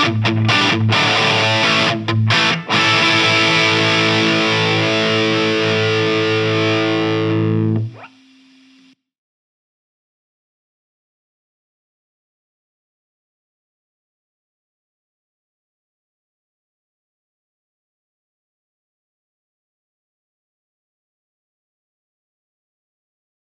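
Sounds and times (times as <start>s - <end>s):
Hagstrom Swede electric guitar with heavy crunch: 0.0s - 9.0s.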